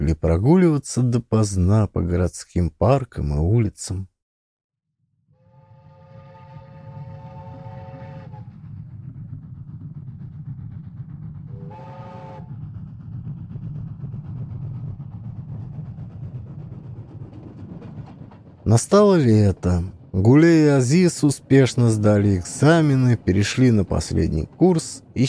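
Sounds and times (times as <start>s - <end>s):
speech: 0.0s - 4.1s, 18.7s - 25.2s
passenger train horn blast: 5.4s - 8.5s, 11.5s - 12.5s
passenger train rolling along with heavy low rumble: 5.5s - 25.2s.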